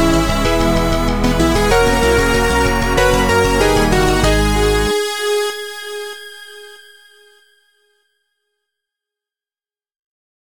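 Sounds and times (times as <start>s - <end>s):
drumless victory background music: 0.0s - 6.8s.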